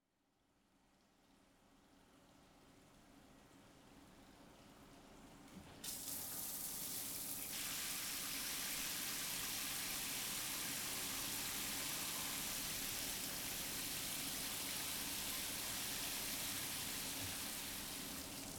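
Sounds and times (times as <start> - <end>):
shower running: 5.8 - 18.5.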